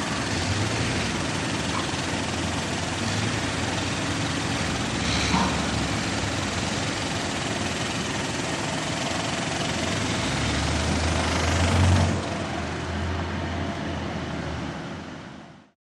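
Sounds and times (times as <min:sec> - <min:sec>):
pneumatic drill at large construction site: 0:00.0 - 0:12.6
bulldozer at large construction site: 0:00.0 - 0:15.7.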